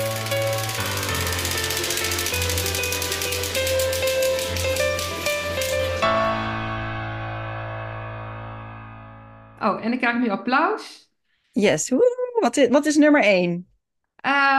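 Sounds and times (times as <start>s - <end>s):
prize wheel spinning: 0.0s - 6.2s
speech: 9.6s - 11.0s, 11.6s - 14.5s.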